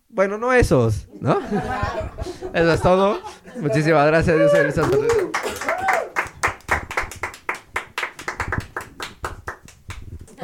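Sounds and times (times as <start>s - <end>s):
speech: 0.1s - 5.4s
laughter: 1.2s - 5.6s
audience applause: 4.3s - 9.7s.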